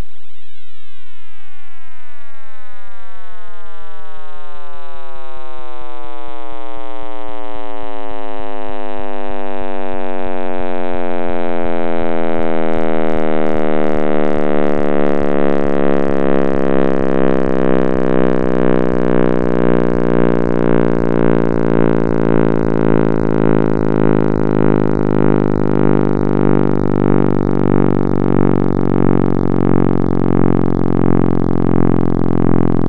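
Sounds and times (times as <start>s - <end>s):
synthesized sonification of the cosmic microwave background: 0.0s - 32.8s
faint rhythmic pulsing: 9.6s - 32.8s.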